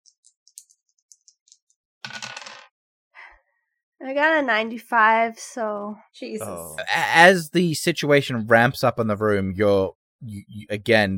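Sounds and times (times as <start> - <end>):
dice rattling and clattering: 2.0 - 2.7
speech: 4.0 - 11.1.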